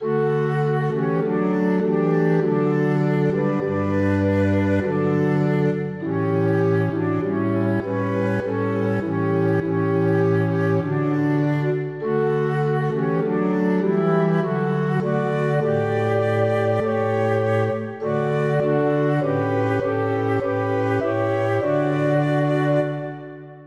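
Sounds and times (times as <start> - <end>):
multi-instrument music: 0.0 - 23.6.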